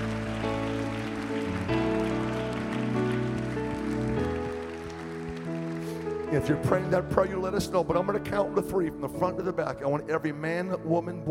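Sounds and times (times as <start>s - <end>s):
audience clapping hands: 0.0s - 7.9s
speech: 6.3s - 11.2s.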